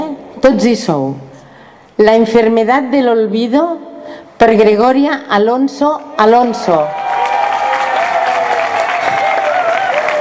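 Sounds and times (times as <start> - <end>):
speech: 0.4 - 1.3, 2.0 - 7.0
indoor audience applause for announced winner: 6.9 - 10.2.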